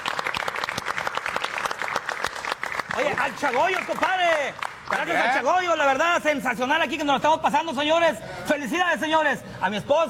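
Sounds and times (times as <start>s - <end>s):
audience applause: 0.0s - 5.5s
speech: 3.1s - 10.0s.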